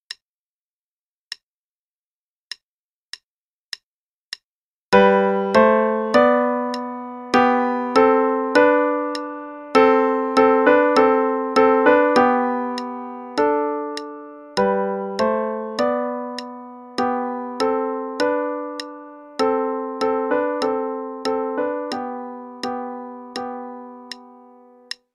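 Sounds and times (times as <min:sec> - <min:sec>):
melody: 0:05.0 - 0:24.8.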